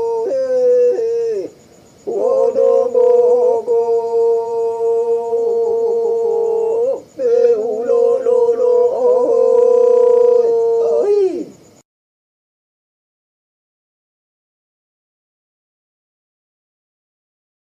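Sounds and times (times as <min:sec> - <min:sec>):
Flores men singing polyphony: 0:00.0 - 0:11.5.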